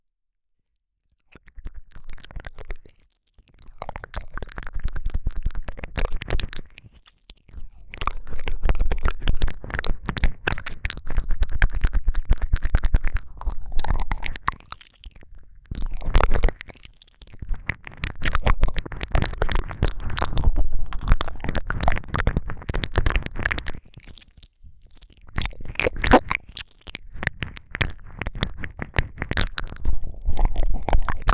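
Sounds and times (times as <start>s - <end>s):
squelchy ASMR ear licking: 3.6s - 31.3s.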